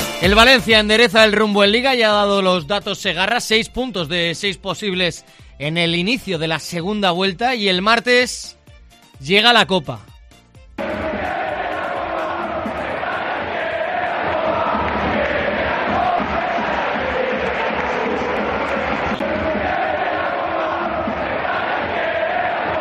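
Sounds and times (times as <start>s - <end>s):
speech: 0.2s - 8.6s, 9.2s - 10.1s
football fans chanting in stadium stands at the Curva Nord: 10.8s - 22.7s.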